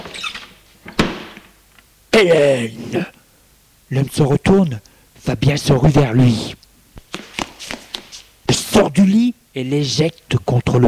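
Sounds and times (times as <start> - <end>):
door opening: 0.0 - 1.5
speech: 2.2 - 3.2, 3.9 - 6.6, 8.8 - 10.8.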